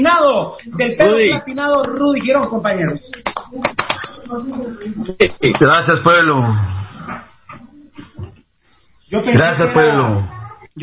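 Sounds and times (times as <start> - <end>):
speech: 0.0 - 6.8, 9.1 - 10.8
applause welcoming a guest: 3.1 - 4.1.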